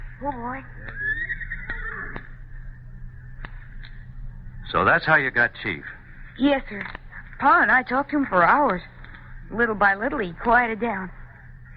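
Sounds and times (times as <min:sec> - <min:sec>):
speech: 0:00.2 - 0:01.0, 0:04.7 - 0:11.2
nervous horse whinnying: 0:00.9 - 0:02.3.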